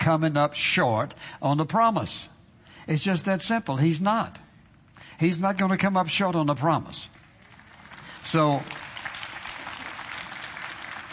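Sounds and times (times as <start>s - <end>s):
speech: 0.1s - 4.4s, 5.2s - 7.2s, 8.2s - 8.9s
sparse clapping from a church congregation during a sermon: 7.1s - 11.1s.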